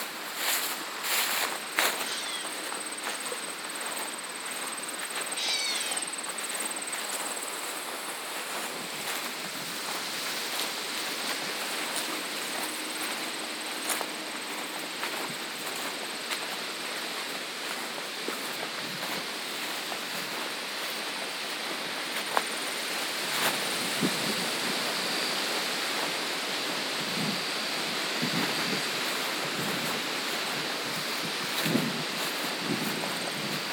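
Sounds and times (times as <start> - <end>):
constant rushing hiss: 0.0 - 33.7
footfalls crunching on a farm trail: 0.0 - 33.7.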